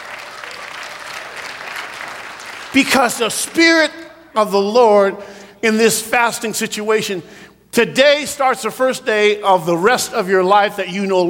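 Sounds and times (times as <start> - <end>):
church congregation applauding during a sermon: 0.0 - 3.9
speech: 2.7 - 11.2.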